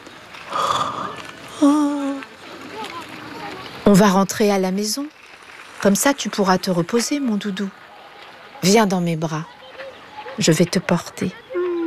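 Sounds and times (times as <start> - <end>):
yawning: 0.5 - 2.3
speech: 3.9 - 5.2, 5.8 - 7.8, 8.6 - 9.6, 10.4 - 11.4.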